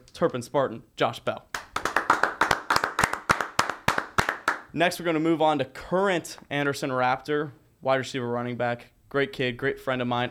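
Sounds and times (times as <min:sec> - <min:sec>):
speech: 0:00.2 - 0:01.6, 0:04.7 - 0:10.2
people clapping hands: 0:01.5 - 0:04.7.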